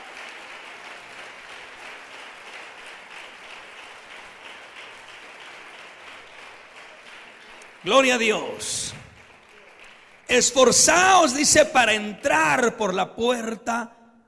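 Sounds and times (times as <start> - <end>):
audience applauding: 0.0 - 13.8
speech: 7.8 - 9.0, 10.3 - 14.0.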